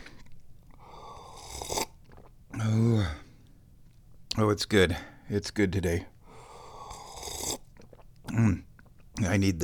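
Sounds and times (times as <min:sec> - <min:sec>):
noisy slurping sip of hot black tea: 0:01.1 - 0:02.3, 0:06.6 - 0:08.1
speech: 0:04.4 - 0:06.1, 0:08.3 - 0:09.6.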